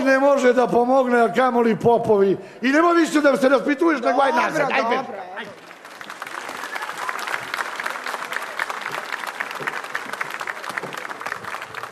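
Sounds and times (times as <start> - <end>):
speech: 0.1 - 5.6
audience applause for two actors after a stage performance: 5.3 - 11.9.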